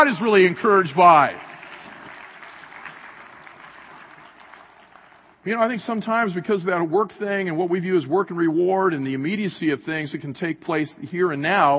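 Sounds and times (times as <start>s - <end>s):
speech: 0.0s - 1.5s, 5.4s - 11.7s
audience applauding: 0.0s - 5.4s.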